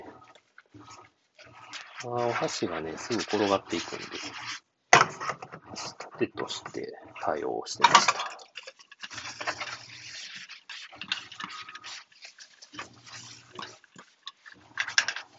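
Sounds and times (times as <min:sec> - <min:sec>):
washing a camping pot lid: 0:00.8 - 0:04.6, 0:07.7 - 0:15.3
speech: 0:02.0 - 0:04.6, 0:06.2 - 0:08.3.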